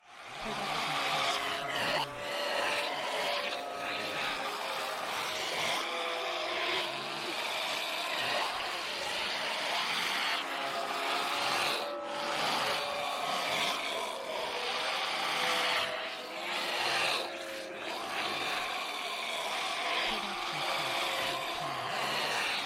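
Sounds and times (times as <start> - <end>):
zombie: 0.2 - 22.6.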